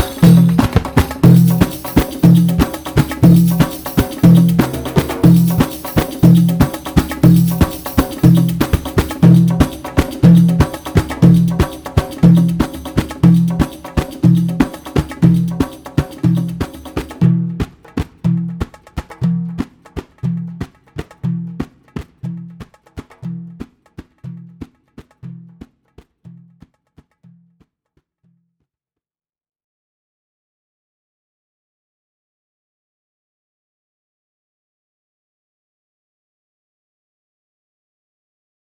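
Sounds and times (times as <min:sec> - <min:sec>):
Malfuf belly dance rhythms: 0:00.0 - 0:24.7.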